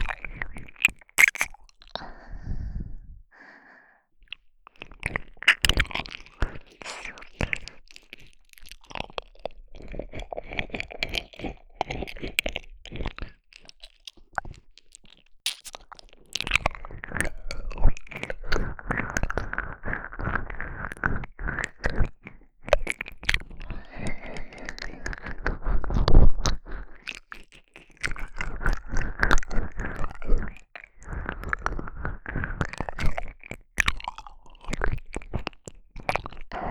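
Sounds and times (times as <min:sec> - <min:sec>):
ear licking on the right ear for ASMR: 0:00.0 - 0:02.4, 0:03.3 - 0:22.2, 0:22.8 - 0:36.6.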